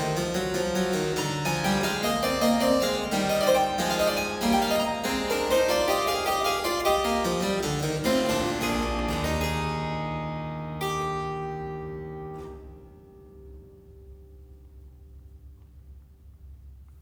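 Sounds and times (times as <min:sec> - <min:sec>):
three-part invention in E major on keyboard: 0:00.0 - 0:13.2.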